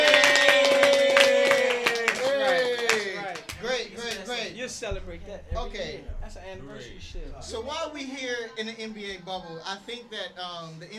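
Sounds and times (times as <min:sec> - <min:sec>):
scattered irregular hand claps: 0:00.0 - 0:06.2
speech: 0:04.7 - 0:10.9.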